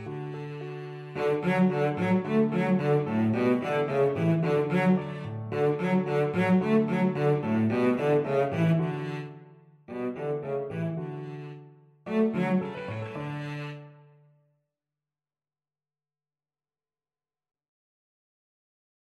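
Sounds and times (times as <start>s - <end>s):
cello playing an ecossaise: 0.0s - 14.2s.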